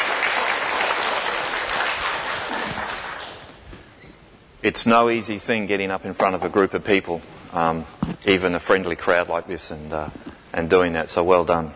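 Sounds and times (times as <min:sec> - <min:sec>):
audience applause: 0:00.0 - 0:03.5
speech: 0:04.6 - 0:11.7.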